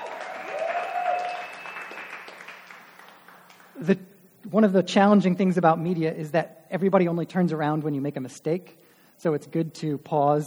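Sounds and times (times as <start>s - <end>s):
audience applause: 0.0s - 3.8s
speech: 3.8s - 10.4s.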